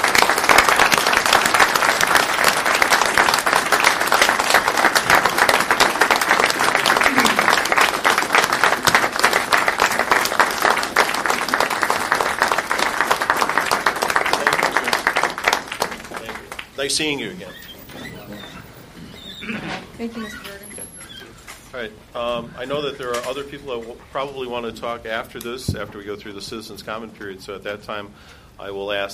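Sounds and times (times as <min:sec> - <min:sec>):
audience applause: 0:00.0 - 0:18.8
speech: 0:16.9 - 0:17.6, 0:20.0 - 0:20.5, 0:21.8 - 0:29.1.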